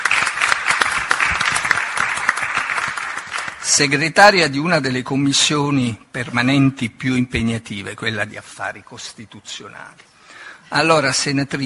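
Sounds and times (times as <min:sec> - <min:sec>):
audience clapping: 0:00.0 - 0:04.0
speech: 0:03.7 - 0:10.1, 0:10.7 - 0:11.6.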